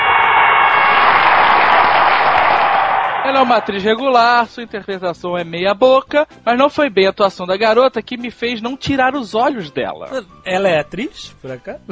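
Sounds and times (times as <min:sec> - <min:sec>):
applause: 0:00.0 - 0:04.1
speech: 0:03.4 - 0:11.9.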